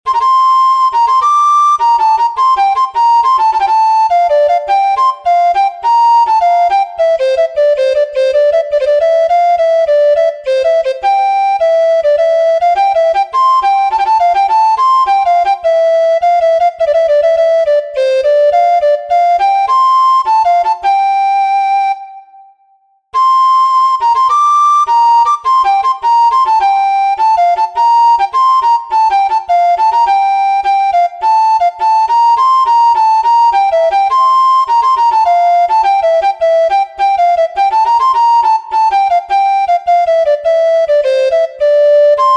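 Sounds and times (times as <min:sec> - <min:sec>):
march in F major for soprano recorder: 0:00.1 - 0:42.3.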